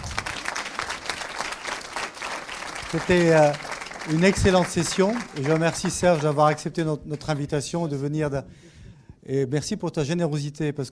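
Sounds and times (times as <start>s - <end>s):
conference audience applauding a speaker: 0.0s - 7.4s
speech: 2.9s - 8.7s, 9.3s - 10.9s.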